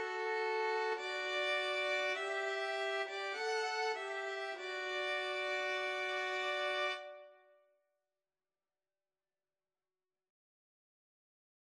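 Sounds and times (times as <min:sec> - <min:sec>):
cello: 0:00.0 - 0:07.3
two violins: 0:00.0 - 0:07.3.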